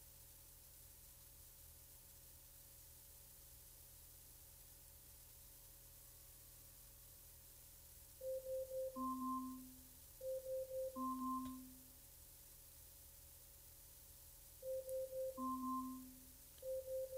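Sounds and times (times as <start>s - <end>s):
smart speaker alarm going off: 8.2s - 11.8s, 14.6s - 17.1s.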